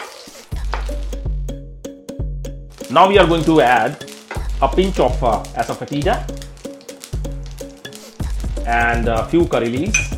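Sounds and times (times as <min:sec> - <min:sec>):
faint sizzle: 0:00.0 - 0:01.5, 0:02.2 - 0:10.1
mustard and cumin seeds spluttering in hot oil in a pan: 0:02.7 - 0:10.1
speech: 0:02.9 - 0:04.0, 0:04.6 - 0:06.4, 0:08.7 - 0:10.1.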